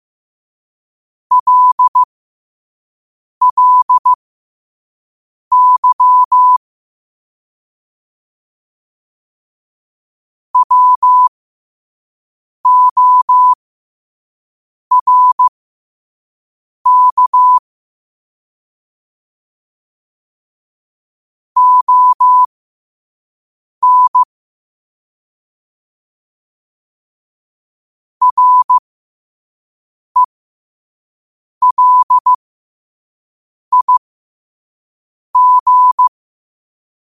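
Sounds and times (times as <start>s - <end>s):
morse code at 5 wpm: 1.3s - 2.1s, 3.4s - 4.2s, 5.5s - 6.6s, 10.6s - 11.3s, 12.7s - 13.6s, 14.9s - 15.5s, 16.9s - 17.6s, 21.6s - 22.5s, 23.8s - 24.3s, 28.2s - 28.8s, 31.6s - 32.4s, 33.7s - 34.0s, 35.4s - 36.1s.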